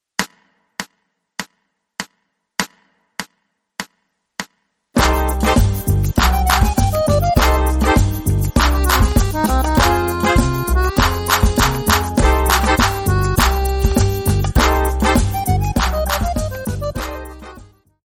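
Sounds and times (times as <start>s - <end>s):
medium tempo Latin music: 5.0s - 17.8s.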